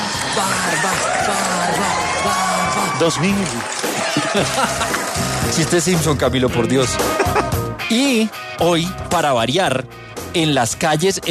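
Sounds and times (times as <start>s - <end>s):
whoops and high shouted yells: 0.0s - 4.9s
audience cheering wildly: 0.0s - 6.2s
speech: 3.0s - 11.2s
laughter: 3.9s - 5.4s, 6.9s - 7.7s.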